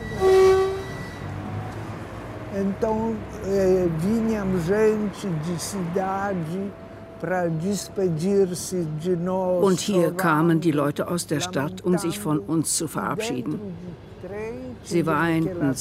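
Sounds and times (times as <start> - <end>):
train horn blast at the railway station in Pinsk: 0.0 - 1.5
low rumbling rail noise at the railway station in Pinsk: 0.0 - 15.7
speech: 2.5 - 15.7.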